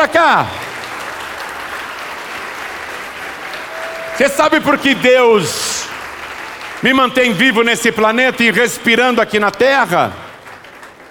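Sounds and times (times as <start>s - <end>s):
speech: 0.0s - 0.7s, 4.2s - 5.8s, 6.8s - 10.2s
large crowd clapping: 0.0s - 11.0s.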